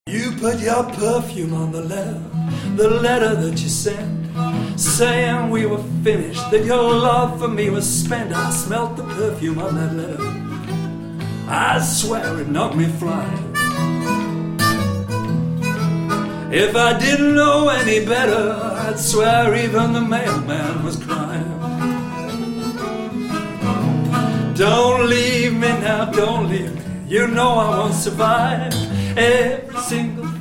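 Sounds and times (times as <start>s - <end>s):
blues music: 0.1s - 30.3s.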